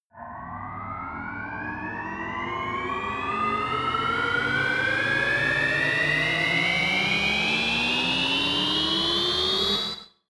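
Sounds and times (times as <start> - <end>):
turbine starting: 0.2 - 10.1.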